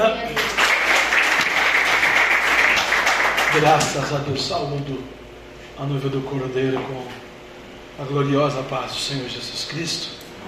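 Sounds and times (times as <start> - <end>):
audience applause: 0.3 - 3.8
speech: 3.6 - 5.2, 5.8 - 7.2, 8.0 - 10.4.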